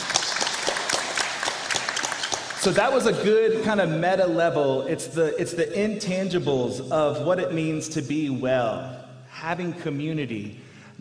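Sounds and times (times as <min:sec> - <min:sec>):
audience applause: 0:00.0 - 0:03.1
speech: 0:02.6 - 0:10.9.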